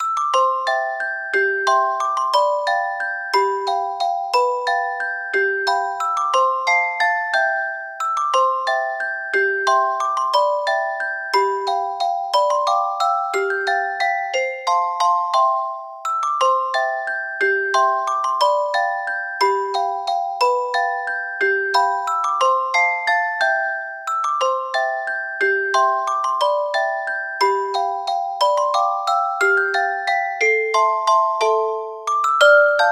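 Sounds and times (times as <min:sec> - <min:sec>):
celesta piece: 0:00.0 - 0:32.9.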